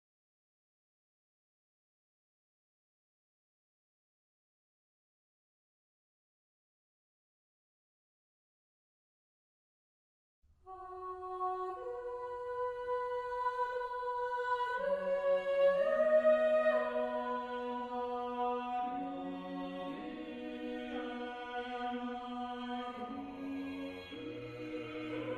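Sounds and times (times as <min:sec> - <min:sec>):
choir singing a motet: 0:10.7 - 0:25.3.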